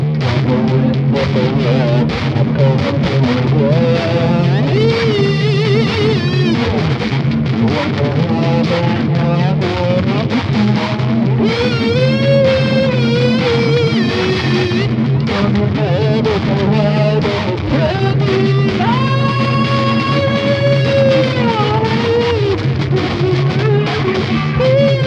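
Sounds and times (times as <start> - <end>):
upbeat music for kids: 0.2 - 25.0.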